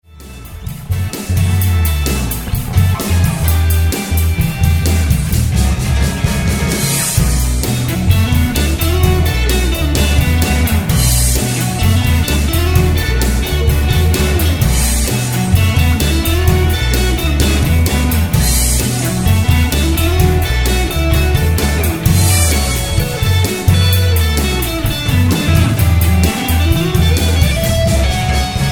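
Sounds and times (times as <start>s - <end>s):
groovy music: 0.0s - 28.7s.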